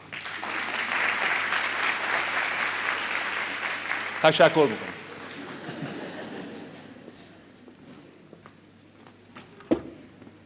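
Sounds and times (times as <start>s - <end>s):
audience applause at a motivational talk: 0.0s - 6.9s
speech: 4.2s - 4.9s
laughter: 5.0s - 7.4s.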